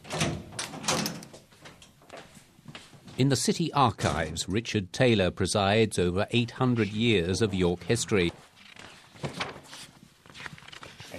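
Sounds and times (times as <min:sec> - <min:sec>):
door being unlocked and opened: 0:00.0 - 0:01.4
speech: 0:03.2 - 0:08.4.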